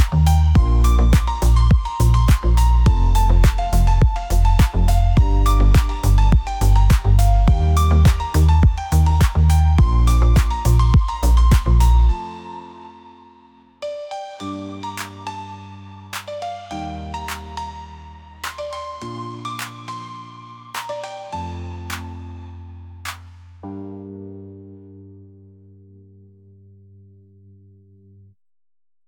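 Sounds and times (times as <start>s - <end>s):
electro groove music: 0.0s - 12.2s.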